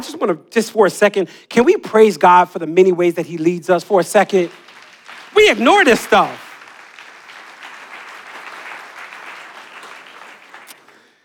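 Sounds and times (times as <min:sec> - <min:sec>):
speech: 0:00.1 - 0:04.6, 0:05.4 - 0:06.4
audience clapping: 0:03.1 - 0:11.2.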